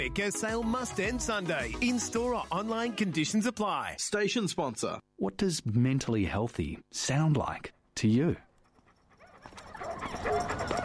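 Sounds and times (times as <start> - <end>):
speech: 0.0 - 8.4
dog barking and whimpering: 8.7 - 10.8.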